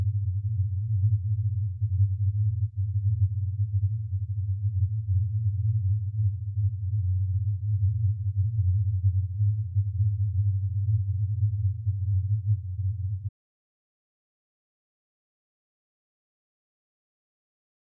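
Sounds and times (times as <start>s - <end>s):
100Hz subwoofer phase test tone: 0.0s - 13.3s.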